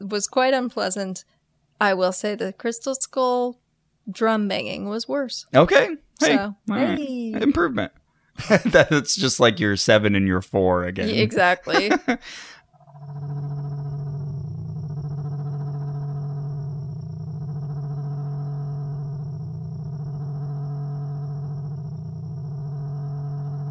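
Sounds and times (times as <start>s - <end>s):
speech: 0.1s - 13.4s
laughter: 6.2s - 9.8s, 11.0s - 12.6s
noisy burst: 11.0s - 23.6s
therapeutic frequency tones as stacked harmonic electronic drone with pulsing wobble: 12.7s - 23.6s.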